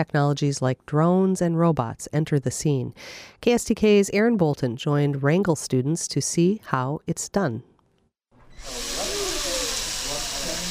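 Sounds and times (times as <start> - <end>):
speech: 0.0 - 7.7
power drill whirring: 8.4 - 10.6.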